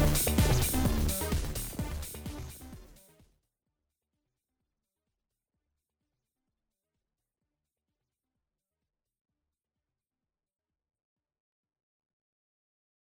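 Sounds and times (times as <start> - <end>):
Virus electro synthesizer: 0.0 - 3.2.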